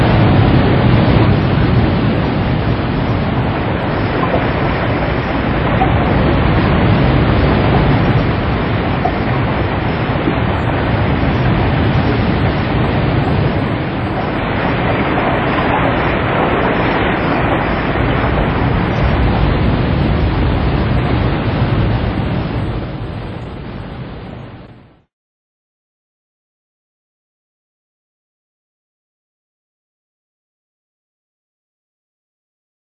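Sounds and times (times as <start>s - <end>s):
storm noise: 0.0s - 25.1s.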